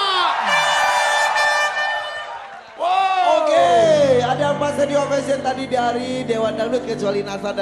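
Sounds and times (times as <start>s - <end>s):
audience of South Sumatra supporters cheering and shouting: 0.0s - 4.2s
speech: 4.8s - 7.6s.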